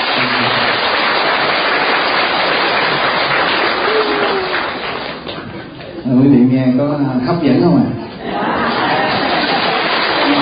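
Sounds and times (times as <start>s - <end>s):
big round of applause: 0.0s - 5.9s, 8.6s - 10.4s
speech: 6.2s - 8.0s
laughter: 8.1s - 10.4s.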